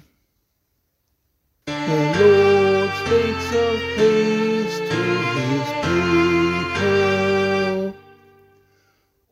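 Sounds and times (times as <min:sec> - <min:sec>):
vocal psalm singing: 0:01.7 - 0:08.7.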